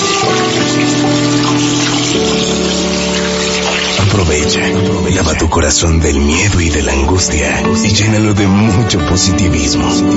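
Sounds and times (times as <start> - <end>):
water running from a tap as hands are washed: 0.0 - 7.2
speech: 4.3 - 10.1.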